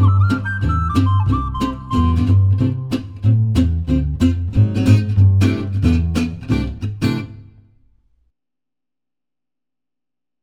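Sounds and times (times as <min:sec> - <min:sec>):
swing music: 0:00.0 - 0:07.4.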